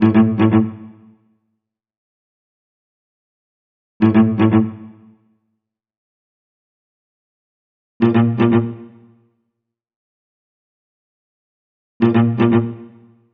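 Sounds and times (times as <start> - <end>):
cello pizzicato: 0.0 - 1.0, 4.0 - 5.0, 8.0 - 9.0, 12.0 - 13.1.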